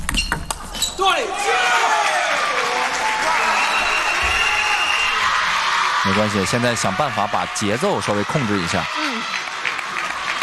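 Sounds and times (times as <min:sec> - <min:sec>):
table tennis ball bouncing during a reverse-side serve: 0:00.0 - 0:00.6
speech: 0:01.0 - 0:02.0, 0:06.0 - 0:09.4
crowd noise: 0:01.1 - 0:10.4.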